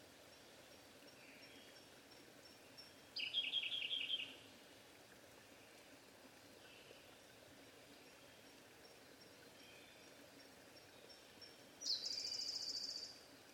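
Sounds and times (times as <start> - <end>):
Siberian blue robin singing: 1.1 - 4.4, 10.8 - 13.2.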